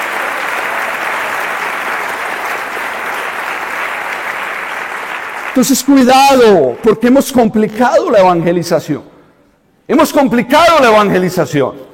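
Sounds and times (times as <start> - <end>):
audience applause: 0.0 - 6.6
speech: 5.6 - 9.1, 9.9 - 11.9.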